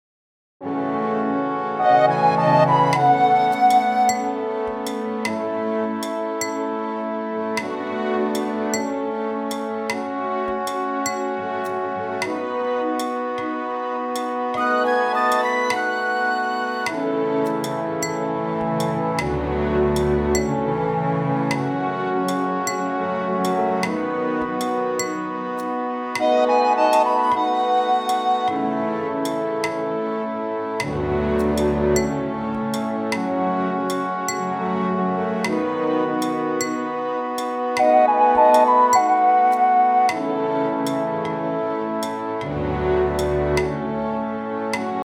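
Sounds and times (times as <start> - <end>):
instrumental Halloween song: 0.7 - 6.7, 7.6 - 45.0.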